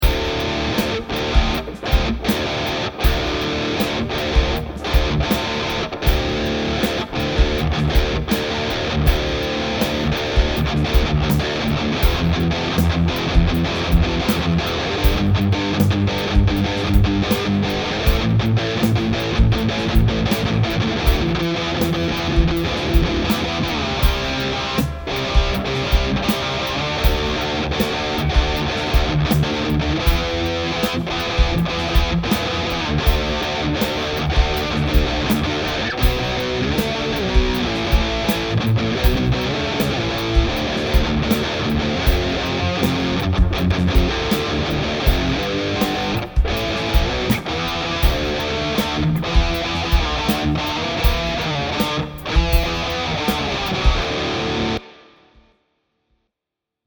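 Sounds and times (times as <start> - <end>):
high-gain distorted guitar: 0.0 - 55.4.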